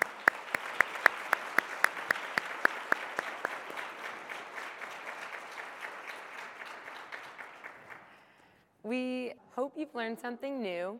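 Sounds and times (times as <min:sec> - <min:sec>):
audience applause: 0:00.0 - 0:08.3
sharp evenly paced claps: 0:00.0 - 0:08.3
speech: 0:08.9 - 0:10.9.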